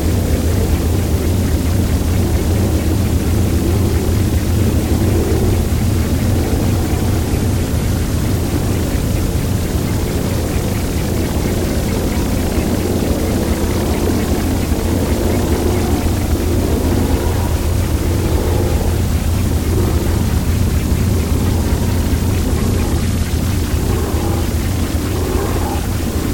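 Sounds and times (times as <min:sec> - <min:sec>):
faint murmurs: 0:00.0 - 0:26.3
low traffic rumble in Warsaw: 0:00.0 - 0:26.3.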